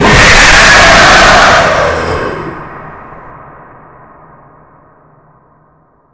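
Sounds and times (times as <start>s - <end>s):
screamer: 0.0s - 3.2s.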